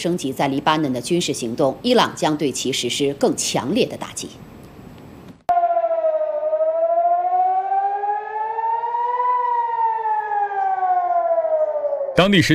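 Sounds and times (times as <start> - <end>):
speech: 0.0 - 4.5, 12.2 - 12.5
air raid warning siren wailing in northern Israel: 5.5 - 12.2.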